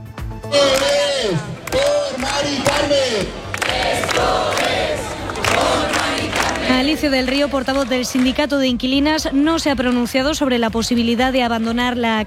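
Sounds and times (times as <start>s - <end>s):
speech: 0.5s - 1.6s, 6.9s - 12.2s
protest crowd chanting in public square: 0.5s - 8.4s.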